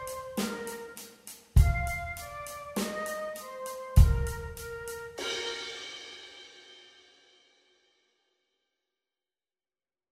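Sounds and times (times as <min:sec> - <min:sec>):
rock flute music: 0:00.0 - 0:06.6.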